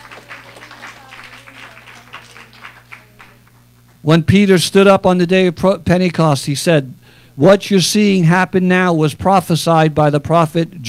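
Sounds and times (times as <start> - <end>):
audience clapping: 0.0 - 4.0
low constant hum: 0.0 - 10.8
speech: 4.0 - 10.8.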